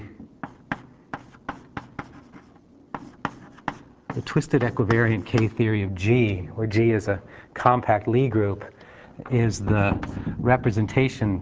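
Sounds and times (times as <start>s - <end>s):
writing on a board during a lecture: 0.4s - 5.6s
speech: 4.2s - 11.4s.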